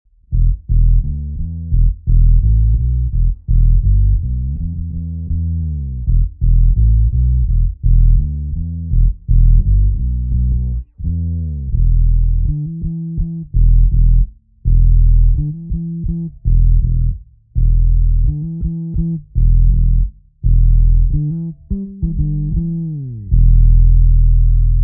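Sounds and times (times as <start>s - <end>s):
fretless bass dub: 0.1s - 24.8s.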